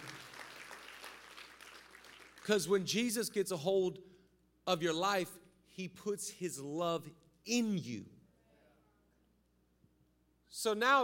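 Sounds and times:
audience clapping: 0:00.0 - 0:02.8
speech: 0:02.4 - 0:04.1, 0:04.7 - 0:08.2, 0:10.5 - 0:11.0.

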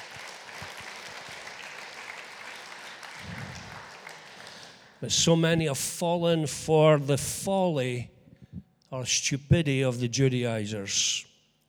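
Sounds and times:
audience applauding: 0:00.0 - 0:05.0
speech: 0:05.0 - 0:08.1, 0:08.9 - 0:11.3.

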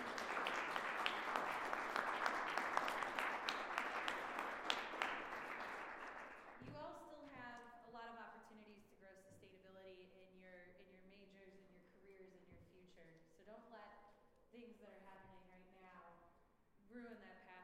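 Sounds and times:
audience applause for panelists: 0:00.0 - 0:06.6.

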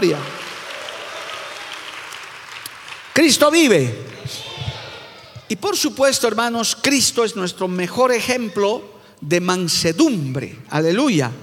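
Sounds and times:
speech: 0:00.0 - 0:00.3, 0:03.2 - 0:04.5, 0:05.5 - 0:11.4
audience applause: 0:00.0 - 0:05.5.

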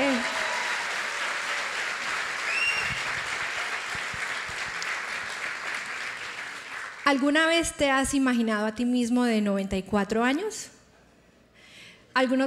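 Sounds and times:
audience applauding loudly: 0:00.0 - 0:07.2
speech: 0:07.1 - 0:10.8, 0:12.2 - 0:12.4.

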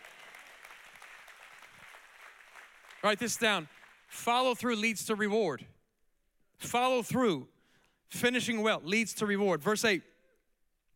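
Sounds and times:
audience clapping: 0:00.0 - 0:04.3
speech: 0:03.0 - 0:05.7, 0:06.6 - 0:07.5, 0:08.1 - 0:10.1.

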